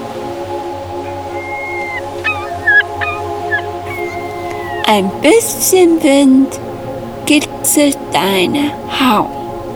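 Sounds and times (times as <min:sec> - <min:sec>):
seagulls calling: 0:00.2 - 0:06.7
speech: 0:05.2 - 0:06.7, 0:07.3 - 0:09.4.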